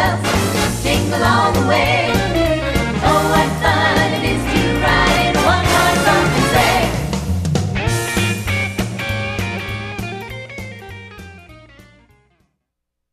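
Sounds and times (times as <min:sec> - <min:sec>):
band playing 1950s and 1960s style music: 0:00.2 - 0:11.4.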